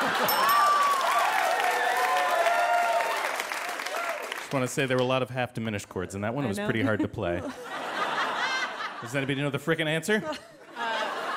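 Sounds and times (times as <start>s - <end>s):
laughter: 0.0s - 0.7s, 6.5s - 11.3s
audience clapping: 0.0s - 5.3s
speech: 4.5s - 7.8s, 9.0s - 10.9s.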